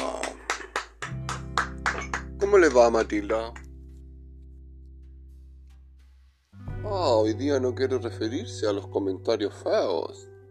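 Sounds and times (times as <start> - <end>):
hand claps: 0.0 - 3.7
speech: 2.5 - 3.6, 6.9 - 10.3
low sustained hum: 2.5 - 8.0.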